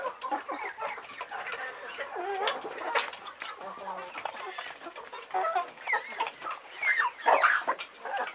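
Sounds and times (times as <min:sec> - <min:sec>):
hens clucking: 0:00.0 - 0:08.3.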